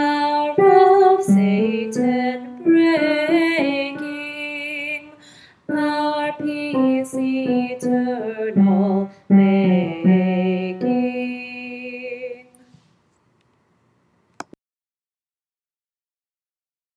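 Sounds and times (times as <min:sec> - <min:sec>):
tenor singing: 0:00.0 - 0:12.6.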